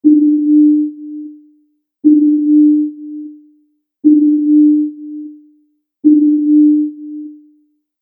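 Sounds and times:
submarine sonar ping: 0.0s - 3.5s, 4.1s - 5.5s, 6.1s - 7.5s.

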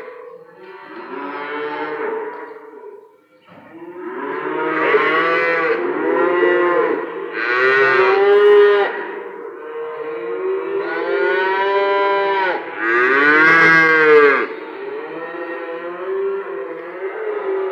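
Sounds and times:
cattle lowing: 0.0s - 17.6s.

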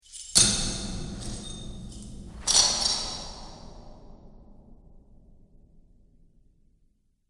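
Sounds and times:
dungeon chains clinking, clattering and clanging: 0.0s - 3.6s.

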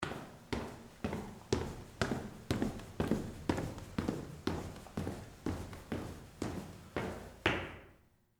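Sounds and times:
footsteps walking down a reverberant stairwell: 0.0s - 8.0s.

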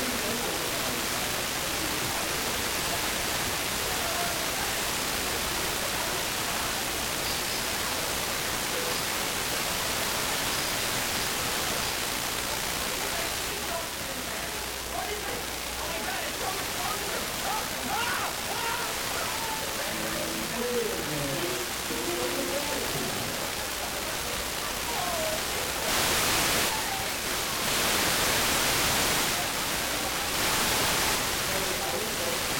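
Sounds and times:
television static from very poor signal reception: 0.0s - 32.5s.

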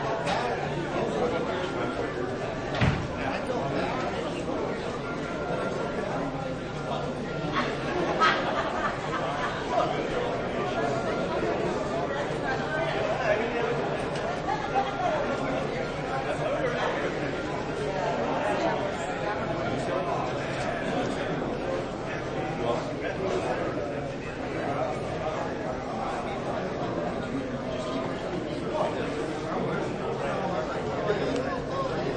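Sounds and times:
ticket counter area ambience at a race track: 0.0s - 32.1s
laughter: 7.0s - 18.8s.

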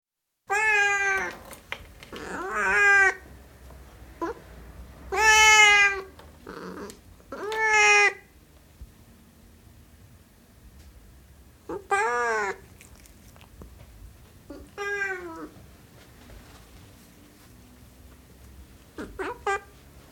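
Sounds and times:
Siamese cat meowing: 0.5s - 1.4s, 2.1s - 3.3s, 5.1s - 8.3s, 11.7s - 12.9s, 14.5s - 15.6s, 19.0s - 19.8s.

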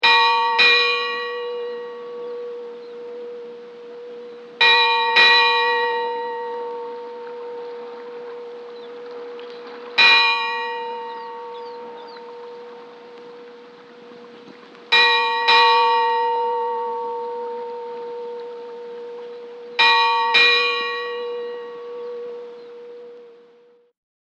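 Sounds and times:
sea buoy bell ringing: 0.0s - 23.8s.

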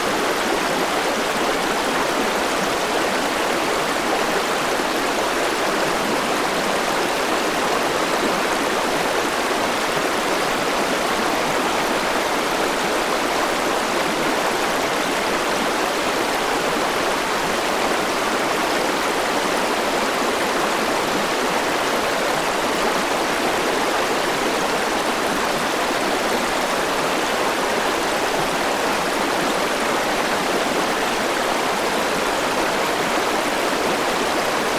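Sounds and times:
river water flowing: 0.0s - 34.7s.

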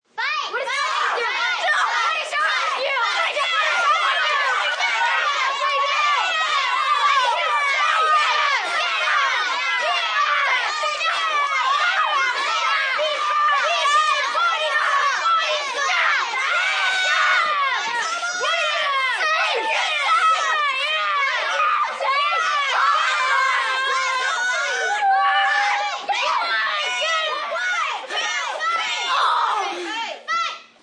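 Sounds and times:
large group of children yelling and screaming in a group fight: 0.2s - 30.8s.

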